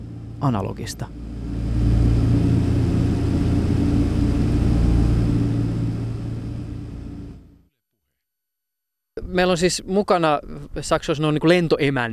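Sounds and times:
DC-3 propeller airliner cabin engine drone: 0:00.0 - 0:07.6
speech: 0:00.4 - 0:01.3, 0:09.4 - 0:12.1.

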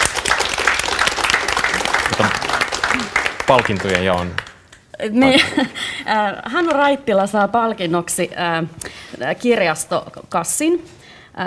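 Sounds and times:
crowd applauding: 0:00.0 - 0:04.6
speech: 0:03.5 - 0:11.4.

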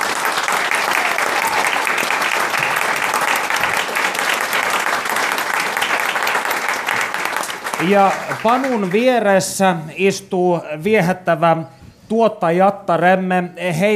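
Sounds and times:
audience applause: 0:00.0 - 0:09.3
speech: 0:07.8 - 0:13.9.

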